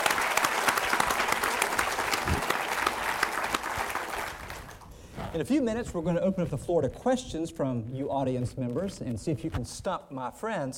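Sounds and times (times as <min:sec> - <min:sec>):
audience applause at a live show taping in Richmond Virginia: 0:00.0 - 0:04.8
speech: 0:05.4 - 0:10.7.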